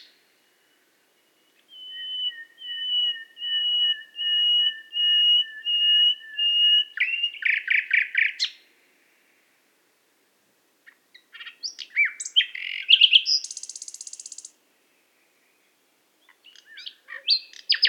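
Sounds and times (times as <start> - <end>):
nightingale singing in Qatar: 0.0 - 8.7, 10.8 - 17.8.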